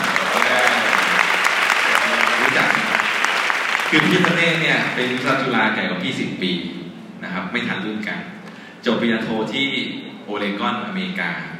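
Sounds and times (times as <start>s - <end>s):
audience applause: 0.0s - 5.6s
speech: 3.9s - 11.5s.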